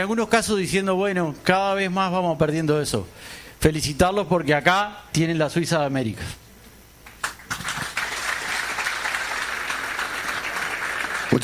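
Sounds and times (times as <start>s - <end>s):
speech: 0.0s - 6.4s
audience applause: 7.2s - 11.4s.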